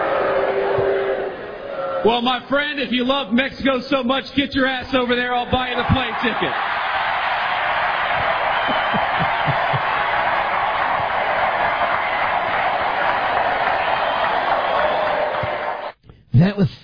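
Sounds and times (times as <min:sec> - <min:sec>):
audience cheering: 0:00.0 - 0:02.4, 0:05.3 - 0:16.0
speech: 0:02.0 - 0:06.8
audience clapping: 0:05.6 - 0:16.0.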